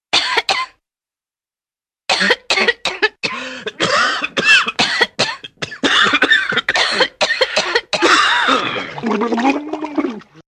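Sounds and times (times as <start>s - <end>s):
person coughing: 0.2s - 0.8s, 2.1s - 9.0s.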